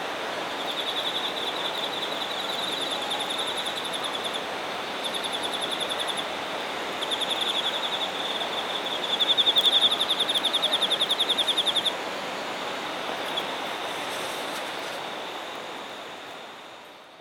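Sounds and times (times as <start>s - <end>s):
background hiss: 0.0s - 17.1s
insect song, a high fast pulsed trill: 0.5s - 12.0s.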